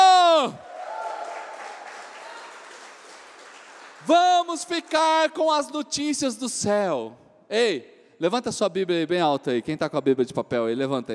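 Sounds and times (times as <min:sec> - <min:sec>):
loud drawn-out shout: 0:00.0 - 0:02.7
audience cheering and clapping: 0:00.0 - 0:05.0
speech: 0:04.0 - 0:11.1.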